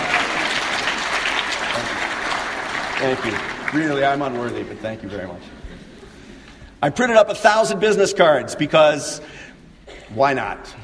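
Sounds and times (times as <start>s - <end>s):
applause: 0.0s - 5.2s
speech: 3.0s - 5.6s, 6.8s - 9.4s, 10.1s - 10.8s.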